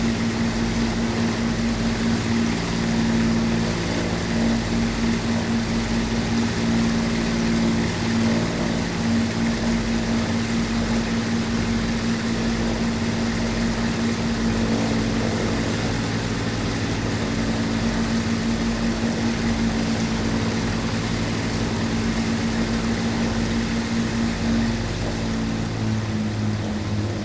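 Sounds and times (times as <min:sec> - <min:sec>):
Avro Lancaster World War II bomber aircraft: 0:00.0 - 0:27.2.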